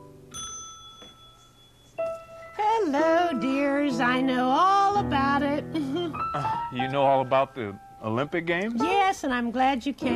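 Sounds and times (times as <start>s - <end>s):
bell rung by hand: 0.3s - 2.0s
speech: 2.9s - 10.1s.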